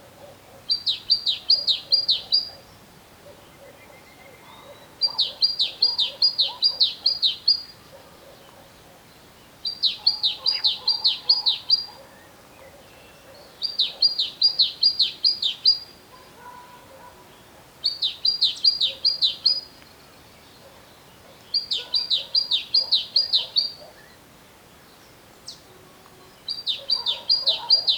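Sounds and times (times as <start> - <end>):
faint lower chirping from another bird: 0.2 - 27.9
great tit calling: 0.7 - 2.6, 4.7 - 7.8, 9.6 - 12.0, 13.4 - 15.9, 17.8 - 19.7, 21.4 - 23.9, 26.4 - 27.9.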